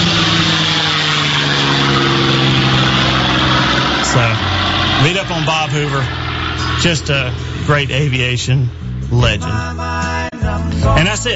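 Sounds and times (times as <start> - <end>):
P-51 Mustang aircraft engine: 0.0 - 9.0
speech: 5.4 - 6.2, 6.8 - 11.3.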